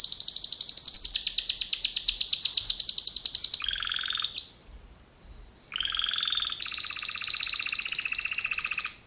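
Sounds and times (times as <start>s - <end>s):
canary singing: 0.0s - 4.5s, 5.7s - 9.0s.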